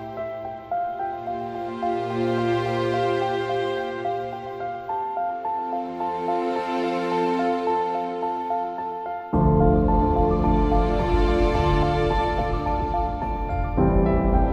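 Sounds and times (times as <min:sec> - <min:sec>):
political documentary background music: 0:00.0 - 0:14.5.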